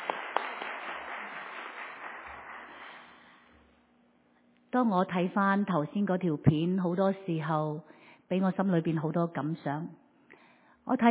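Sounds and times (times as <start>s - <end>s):
applause for the choir: 0.0s - 3.5s
speech: 4.7s - 10.0s, 10.9s - 11.0s.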